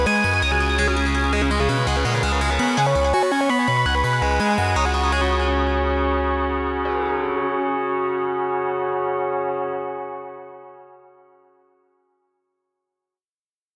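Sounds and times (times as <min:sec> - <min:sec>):
modular synthesizer: 0:00.0 - 0:10.9.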